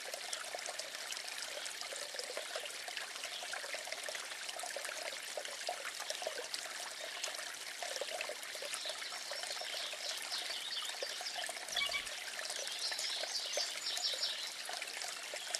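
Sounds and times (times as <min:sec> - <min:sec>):
stream flowing: 0:00.0 - 0:15.5
bell ringing: 0:11.8 - 0:12.1.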